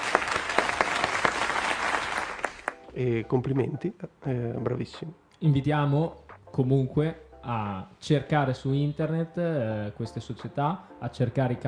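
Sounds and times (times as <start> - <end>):
crowd applause at a sports awards event: 0.0 - 2.8
speech: 3.0 - 11.6.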